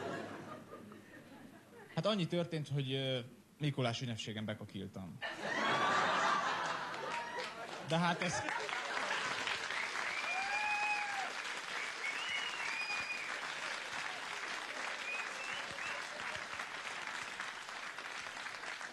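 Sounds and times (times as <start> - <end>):
laughter: 0.0 - 2.0, 5.2 - 9.6
speech: 2.0 - 5.5, 7.9 - 8.6
applause: 6.4 - 18.9.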